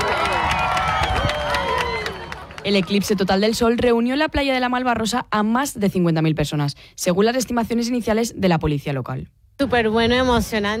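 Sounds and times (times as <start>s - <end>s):
beach crowd shouting with excited voices: 0.0s - 2.6s
beach crowd at Malvarrosa applauding the end of a total solar eclipse: 0.0s - 3.5s
speech: 2.6s - 10.7s.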